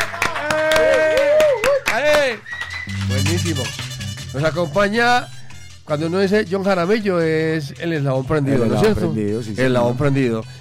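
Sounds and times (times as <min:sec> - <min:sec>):
audience applause: 0:00.0 - 0:04.1
speech: 0:02.3 - 0:10.5.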